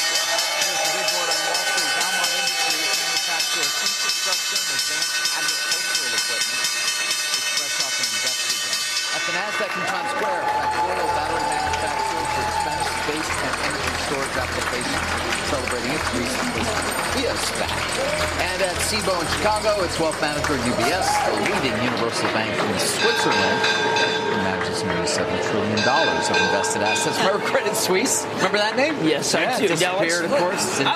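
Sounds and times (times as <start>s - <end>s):
applause: 0.0s - 4.3s, 9.6s - 25.2s
stock exchange opening bell: 0.0s - 21.1s, 22.9s - 28.3s
speech: 9.6s - 11.4s, 14.1s - 30.9s.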